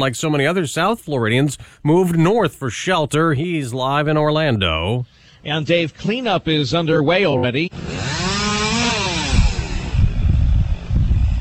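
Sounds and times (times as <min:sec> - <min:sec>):
speech: 0:00.0 - 0:08.2
chainsaw cutting up tree branches: 0:07.7 - 0:11.3.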